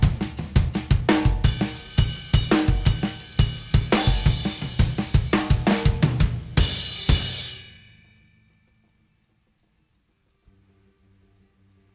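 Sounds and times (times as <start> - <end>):
drums: 0.0 - 8.3.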